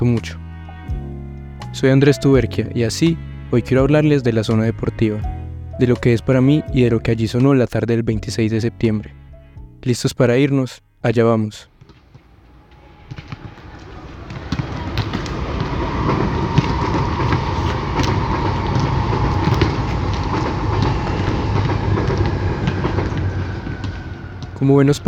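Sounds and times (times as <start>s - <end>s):
speech: 0.0s - 0.4s, 1.8s - 9.2s, 9.8s - 11.7s, 24.6s - 25.0s
Medellín Metro train passing overhead near Universidad station: 12.2s - 25.0s.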